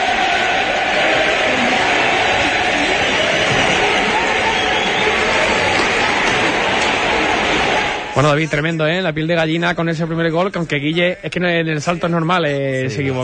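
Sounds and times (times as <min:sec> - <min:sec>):
stadium crowd cheering after a goal: 0:00.0 - 0:08.7
speech: 0:08.2 - 0:13.2.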